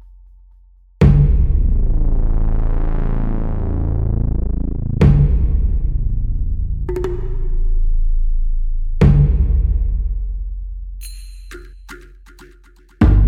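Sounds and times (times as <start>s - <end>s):
ambient action music: 1.0s - 11.2s.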